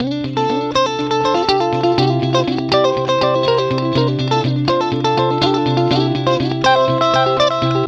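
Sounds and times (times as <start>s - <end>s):
guitar: 0.0s - 7.8s.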